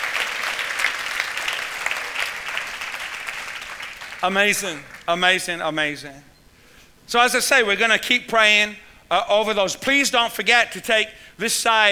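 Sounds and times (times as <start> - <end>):
audience clapping: 0.0 - 5.2
speech: 4.2 - 6.3, 7.1 - 11.9.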